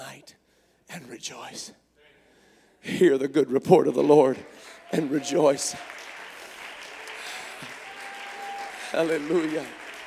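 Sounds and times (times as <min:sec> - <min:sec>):
speech: 0:00.2 - 0:01.9, 0:02.8 - 0:06.0, 0:08.9 - 0:09.8
audience clapping hands: 0:04.0 - 0:10.0.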